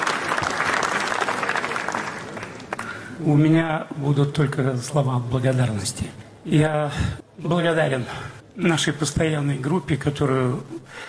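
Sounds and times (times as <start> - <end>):
large audience applause at a film premiere: 0.0 - 3.1
speech: 3.2 - 11.0.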